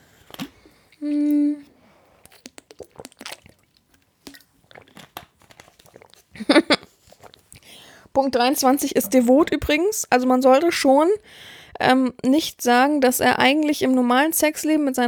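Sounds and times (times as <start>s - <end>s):
person sipping and swallowing a drink: 0.2s - 7.7s
speech: 1.0s - 1.4s, 8.2s - 15.0s.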